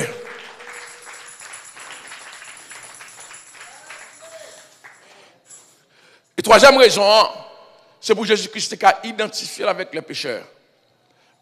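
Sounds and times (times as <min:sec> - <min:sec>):
audience applause: 0:00.0 - 0:05.0
speech: 0:06.5 - 0:07.4, 0:08.0 - 0:10.6.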